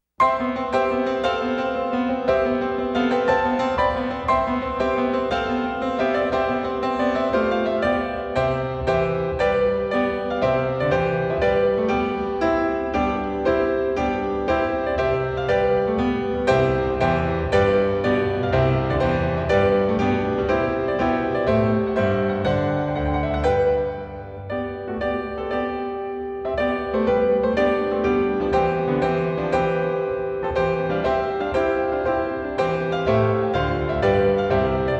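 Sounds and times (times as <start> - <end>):
piano: 0.0 - 34.9.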